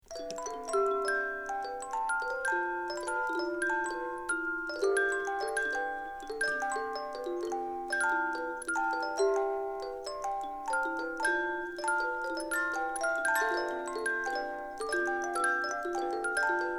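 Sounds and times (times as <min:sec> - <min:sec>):
card-fed hand-cranked music box: 0:00.0 - 0:16.7.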